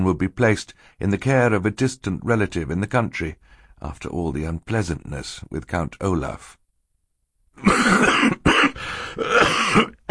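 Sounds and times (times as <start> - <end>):
speech: 0.0 - 6.6, 9.2 - 10.0
coughing into a white handkerchief: 7.6 - 10.0.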